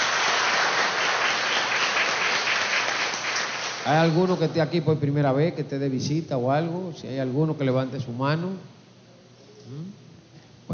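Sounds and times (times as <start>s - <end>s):
audience applause: 0.0s - 4.4s
speech: 3.9s - 8.8s, 9.7s - 10.0s.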